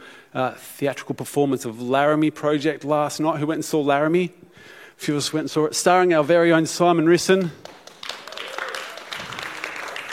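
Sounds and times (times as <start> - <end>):
speech: 0.3 - 7.8
audience applause: 7.6 - 10.1.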